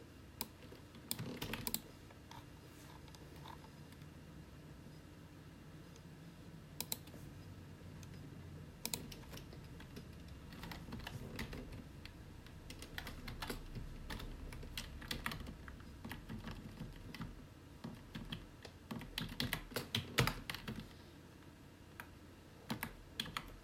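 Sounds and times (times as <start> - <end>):
computer humming: 0.0 - 23.6
typing on a computer keyboard: 0.4 - 2.4, 6.8 - 7.2, 8.8 - 21.0, 22.0 - 23.6.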